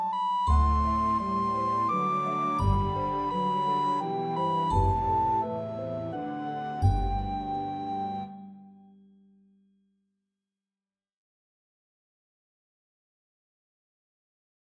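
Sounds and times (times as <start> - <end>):
recorder melody: 0.0 - 8.7.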